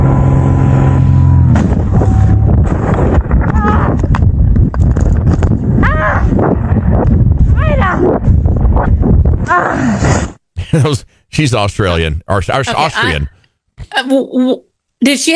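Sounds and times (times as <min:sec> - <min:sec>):
paramotor engine hum: 0:00.0 - 0:03.4
wind buffeting and rumbling as a plane strikes a paramotor: 0:00.0 - 0:10.4
speech: 0:11.4 - 0:15.3.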